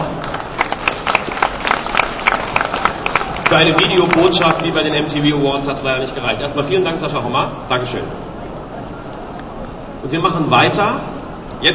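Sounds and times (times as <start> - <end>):
audience applause: 0.0 - 5.1
speech: 3.5 - 8.3, 10.0 - 11.7.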